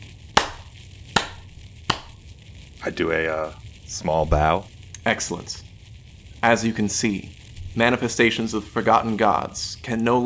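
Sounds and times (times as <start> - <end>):
hand claps: 0.4 - 2.2
speech: 2.8 - 5.7, 6.4 - 10.2.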